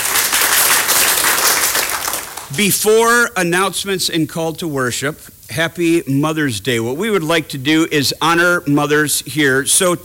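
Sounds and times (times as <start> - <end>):
church congregation applauding after a baptism testimony: 0.0 - 2.7
speech: 2.5 - 10.0.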